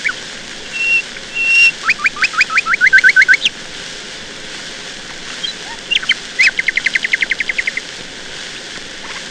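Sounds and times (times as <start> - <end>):
nightingale singing: 0.0 - 3.5, 5.4 - 7.9.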